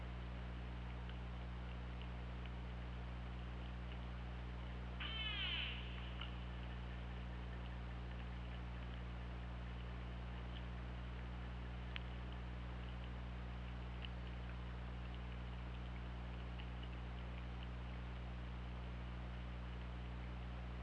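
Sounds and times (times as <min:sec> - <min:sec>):
constant low hum: 0:00.0 - 0:20.8
orca pulsed call: 0:05.0 - 0:06.9.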